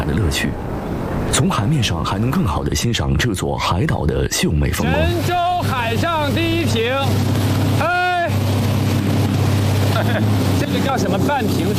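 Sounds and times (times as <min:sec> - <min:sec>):
rushing wind: 0:00.0 - 0:11.7
speech: 0:00.1 - 0:07.4, 0:10.0 - 0:11.7
motorboat speeding across the sea off an island near Wenzhou: 0:04.7 - 0:11.7.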